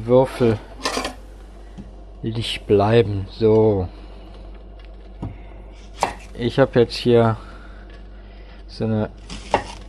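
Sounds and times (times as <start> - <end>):
speech: 0.0 - 0.7, 2.2 - 4.0, 6.4 - 7.5, 8.8 - 9.3
knife chopping an onion on a cutting board: 6.0 - 6.3, 9.2 - 9.8.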